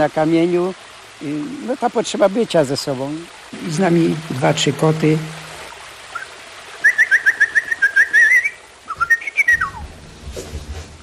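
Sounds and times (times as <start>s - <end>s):
speech: 0.0s - 5.4s
blackbird singing atop a pine tree in a garden: 6.1s - 9.8s.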